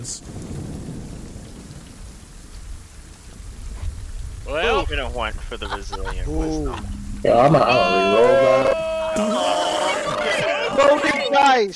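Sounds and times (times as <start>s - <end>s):
speech: 0.0s - 0.4s, 4.5s - 9.6s, 10.8s - 11.7s
deep rolling thunder rumble: 0.0s - 11.1s
heavy rain hiss: 0.0s - 11.7s
laughter: 4.6s - 11.7s.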